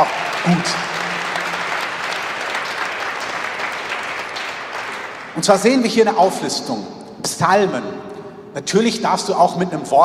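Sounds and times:
speech: 0.0 - 1.1, 5.4 - 10.0
audience applause: 0.0 - 5.4.

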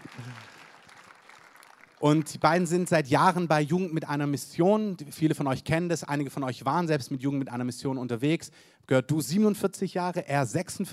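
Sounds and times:
audience applause: 0.0 - 2.3
speech: 2.0 - 10.9.

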